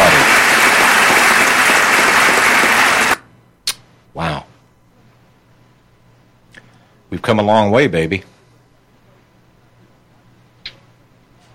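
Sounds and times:
standing audience applauding: 0.0 - 3.2
speech: 7.3 - 8.3.

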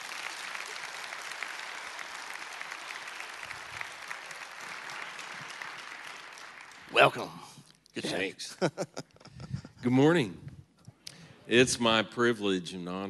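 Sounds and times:
church congregation applauding to welcome a musician to the stage: 0.0 - 7.5
speech: 7.0 - 9.2, 9.8 - 10.4, 11.5 - 13.0
laughter: 8.0 - 9.9.

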